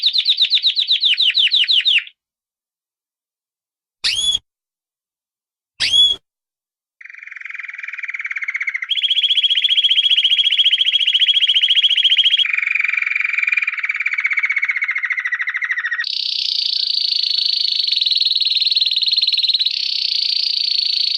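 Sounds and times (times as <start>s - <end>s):
canary singing: 0.0s - 2.2s, 4.0s - 4.4s, 5.8s - 6.2s, 7.0s - 12.6s, 13.2s - 21.1s.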